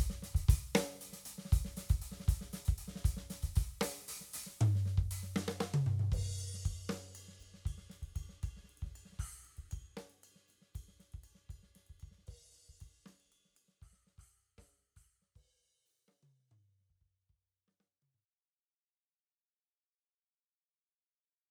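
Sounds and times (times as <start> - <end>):
Pork Pie cherry bubinga snare drum: 0.0 - 10.2.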